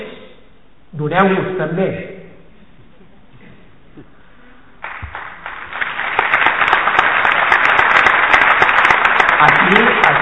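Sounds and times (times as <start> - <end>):
speech: 0.9 - 2.1
audience applause: 4.8 - 10.1.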